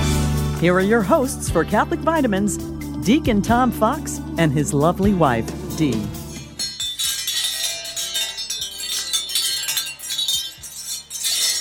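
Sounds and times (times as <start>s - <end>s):
speech: 0.6s - 6.2s
wind chime tinkling: 6.3s - 11.5s.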